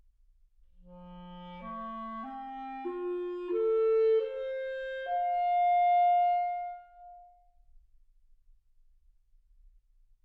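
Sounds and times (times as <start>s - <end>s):
clarinet: 0.8s - 7.6s.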